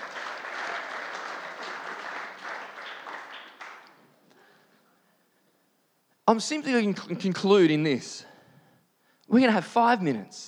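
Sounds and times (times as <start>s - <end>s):
round of applause: 0.0s - 4.2s
speech: 6.3s - 8.3s, 9.3s - 10.4s.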